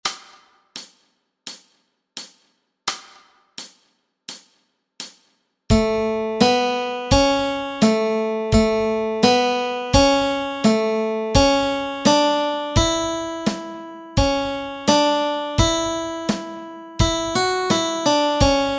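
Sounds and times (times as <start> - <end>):
melody track: 5.7 - 18.7.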